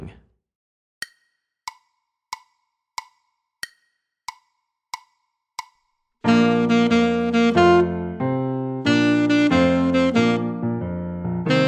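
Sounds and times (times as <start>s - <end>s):
alto saxophone etude: 6.3s - 10.8s, 11.5s - 11.6s.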